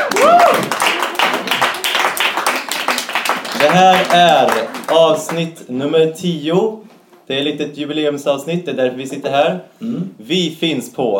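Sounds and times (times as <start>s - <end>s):
rising whoop or whistle: 0.0s - 0.8s
few people applauding: 0.0s - 5.5s
speech: 3.6s - 11.1s.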